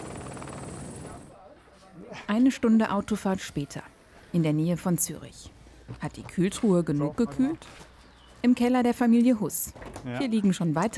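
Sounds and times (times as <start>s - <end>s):
helicopter rotor thumping: 0.0s - 1.3s
helicopter whining turbine tone: 0.0s - 1.3s
speech: 2.2s - 10.9s.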